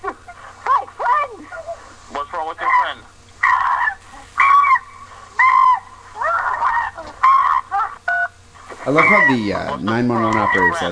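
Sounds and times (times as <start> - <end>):
200-pound chimp screaming: 2.6 - 10.8
speech: 8.9 - 10.8.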